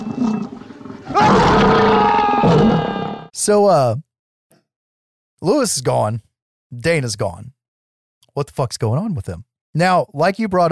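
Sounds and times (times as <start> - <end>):
monster dog growling roar in a film: 0.0 - 3.3
speech: 3.4 - 4.1, 5.4 - 7.6, 8.4 - 10.7.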